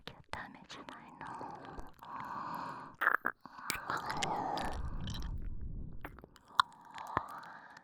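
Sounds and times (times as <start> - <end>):
nipple licking: 0.2 - 5.5, 6.0 - 7.8
ear licking: 1.3 - 5.5, 6.1 - 7.6
oral sucking sounds: 2.0 - 5.3.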